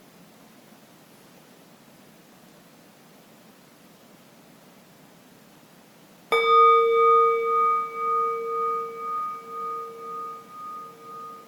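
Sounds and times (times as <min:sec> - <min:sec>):
gong struck: 0:06.3 - 0:11.4.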